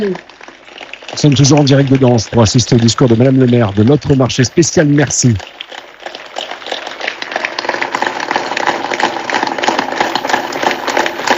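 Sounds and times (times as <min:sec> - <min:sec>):
speech: 0:00.0 - 0:00.3, 0:01.2 - 0:05.8
applause: 0:06.8 - 0:11.3.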